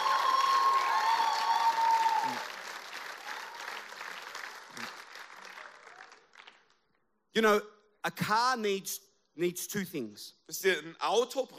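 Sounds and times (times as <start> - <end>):
crowd clapping and cheering: 0.0 - 7.0
speech: 7.4 - 11.5.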